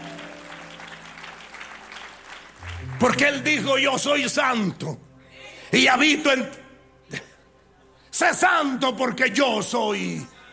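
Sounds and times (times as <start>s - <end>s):
audience applauding: 0.0s - 3.9s
speech: 3.0s - 5.1s, 5.7s - 6.6s, 8.2s - 10.4s.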